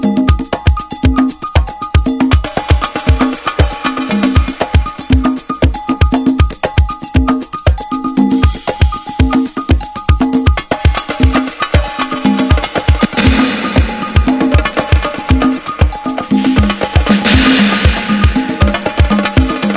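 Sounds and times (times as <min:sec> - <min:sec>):
disco percussion jam: 0:00.0 - 0:19.7.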